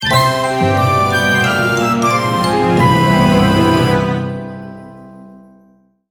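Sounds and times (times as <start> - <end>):
quest complete jingle: 0.0 - 5.2.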